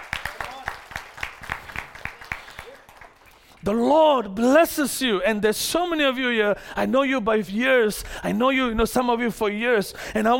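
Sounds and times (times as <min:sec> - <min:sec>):
crowd clapping in unison: 0:00.0 - 0:03.7
speech: 0:03.6 - 0:10.3.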